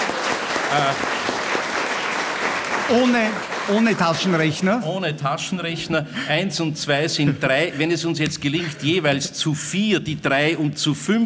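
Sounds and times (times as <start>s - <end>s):
audience applause: 0.0s - 4.9s
speech: 0.7s - 1.1s, 2.9s - 11.2s.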